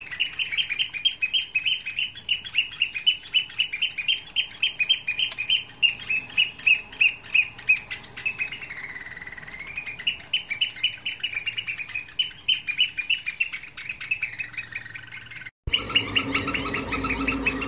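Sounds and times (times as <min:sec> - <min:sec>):
Eurasian oystercatcher piping: 0:00.0 - 0:17.6.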